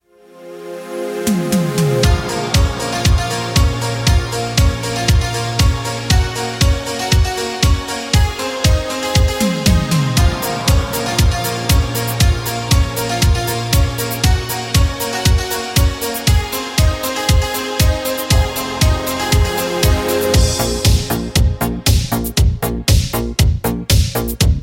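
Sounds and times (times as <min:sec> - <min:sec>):
instrumental music: 0:00.1 - 0:24.6.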